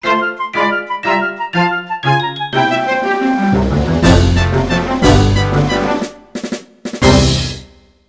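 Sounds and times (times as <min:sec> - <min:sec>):
march music for a music minigame: 0:00.0 - 0:07.8.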